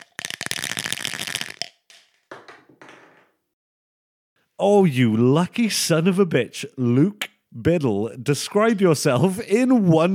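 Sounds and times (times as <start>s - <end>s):
dice being rolled: 0.0s - 3.0s
speech: 4.6s - 10.1s.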